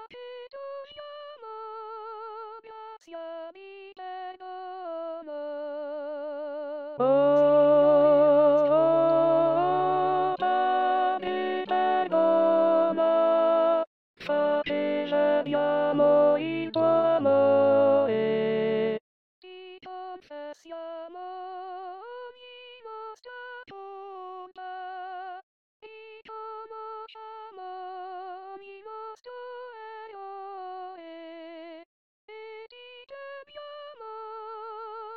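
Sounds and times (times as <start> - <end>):
contralto voices singing: 7.0 - 19.0.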